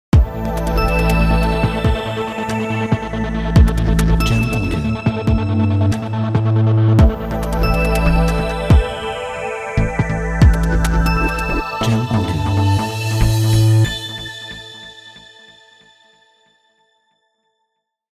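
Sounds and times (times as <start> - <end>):
tech intro music: 0.2 - 13.8.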